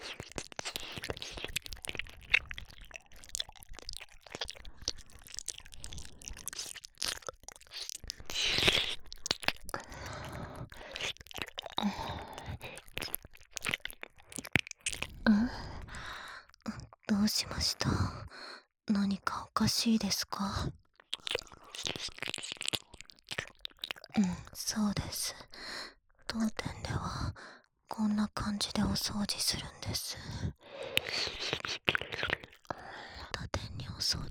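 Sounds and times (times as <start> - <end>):
ear licking: 0.0 - 16.3, 21.0 - 24.6, 30.7 - 33.2
fellatio sounds: 0.0 - 33.8
deep kissing: 30.9 - 32.5.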